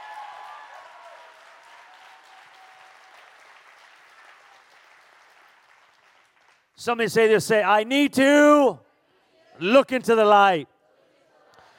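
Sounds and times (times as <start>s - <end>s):
audience clapping: 0.0s - 6.8s
speech: 6.8s - 8.8s, 9.6s - 10.7s.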